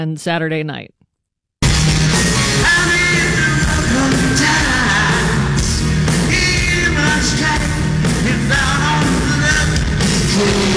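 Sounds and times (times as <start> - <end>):
speech: 0.0 - 1.0
live rock band playing, recorded from the crowd: 1.6 - 10.7
wavering sung vocal: 2.6 - 10.7.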